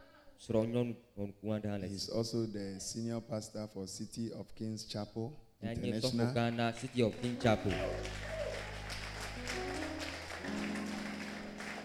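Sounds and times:
speech: 0:00.4 - 0:08.3
weak audience clapping: 0:06.0 - 0:11.8.

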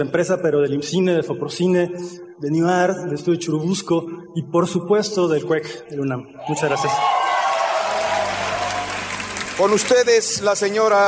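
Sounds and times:
speech: 0:00.0 - 0:07.2, 0:09.6 - 0:11.0
audience applause: 0:06.8 - 0:10.8.

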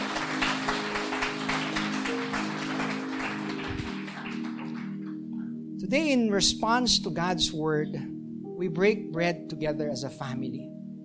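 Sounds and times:
audience loud clapping: 0:00.0 - 0:05.2
speech: 0:05.9 - 0:10.7.

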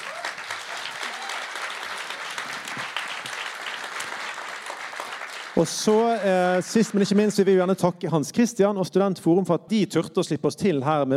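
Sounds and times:
audience applause: 0:00.0 - 0:07.4
speech: 0:05.6 - 0:11.1.

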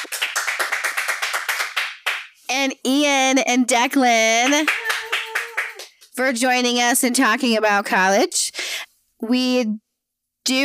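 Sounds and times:
audience clapping for a pastor: 0:00.0 - 0:02.4, 0:04.4 - 0:06.2
speech: 0:02.6 - 0:04.8, 0:06.2 - 0:08.4, 0:09.2 - 0:09.8, 0:10.5 - 0:10.6.

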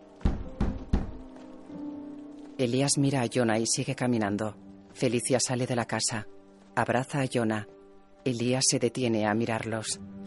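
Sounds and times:
knocking on a door: 0:00.2 - 0:01.3
speech: 0:02.6 - 0:10.2.

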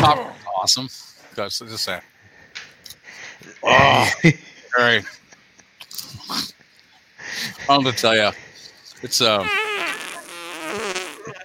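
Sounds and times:
speech: 0:00.0 - 0:02.1, 0:02.8 - 0:05.2, 0:06.0 - 0:06.5, 0:07.3 - 0:09.6
fart sound effect: 0:09.4 - 0:11.4.

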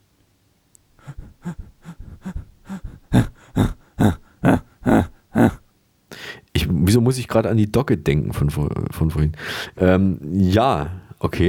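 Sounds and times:
rapid diaphragm breathing through the nose: 0:01.0 - 0:05.6
speech: 0:07.1 - 0:11.4.

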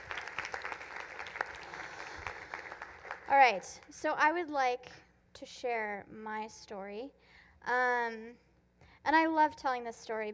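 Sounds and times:
audience applause: 0:00.0 - 0:03.6
speech: 0:03.3 - 0:08.4, 0:09.0 - 0:10.3.

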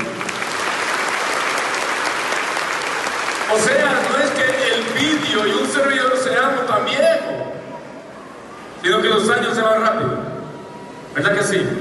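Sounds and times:
loud audience applause: 0:00.0 - 0:05.8
speech: 0:03.5 - 0:07.6, 0:08.8 - 0:10.3, 0:11.2 - 0:11.7.

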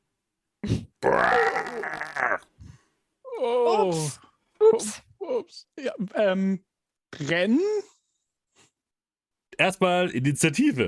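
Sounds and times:
speech: 0:00.6 - 0:02.4, 0:03.4 - 0:07.9, 0:09.6 - 0:10.8
voice imitating a bear's growl: 0:01.0 - 0:02.5.

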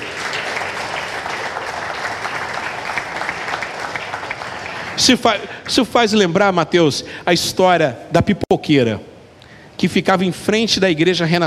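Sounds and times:
audience applause: 0:00.0 - 0:05.8
speech: 0:05.0 - 0:09.1, 0:09.8 - 0:11.4.

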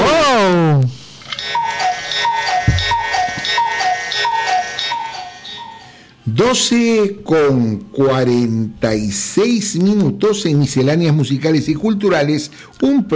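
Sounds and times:
cuckoo clock ticking: 0:01.4 - 0:05.9
cuckoo clock bright chiming notes: 0:02.0 - 0:06.0
speech: 0:06.4 - 0:13.1.

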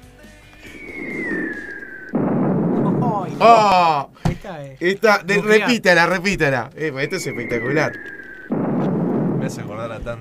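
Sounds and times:
bomb whistle gliding downward in pitch: 0:00.6 - 0:02.8, 0:07.0 - 0:08.6
bomb explosion blast and heavy sustained roar: 0:00.7 - 0:04.0, 0:07.1 - 0:10.1
speech: 0:03.4 - 0:08.2, 0:09.4 - 0:10.2.

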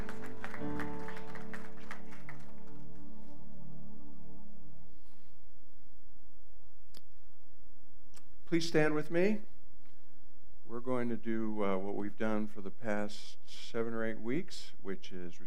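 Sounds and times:
church audience applauding: 0:00.0 - 0:03.4
speech: 0:08.5 - 0:09.5, 0:10.8 - 0:15.4.

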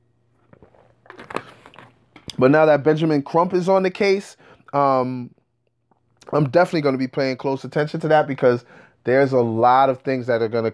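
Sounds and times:
person taking a drink of water: 0:00.5 - 0:02.0
speech: 0:02.4 - 0:05.4, 0:06.3 - 0:10.7.

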